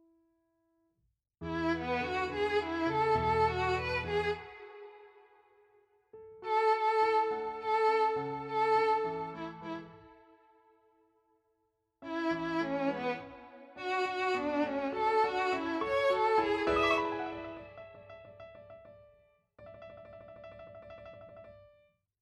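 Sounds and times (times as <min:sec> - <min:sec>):
violin and piano playing an adagio: 0:01.4 - 0:05.2, 0:06.3 - 0:10.1, 0:12.0 - 0:18.6.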